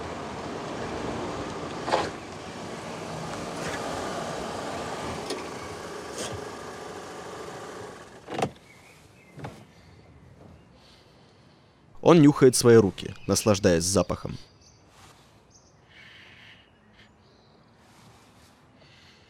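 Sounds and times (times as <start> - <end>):
car pulling up and parking at curb: 0.0 - 11.0
speech: 12.1 - 14.5.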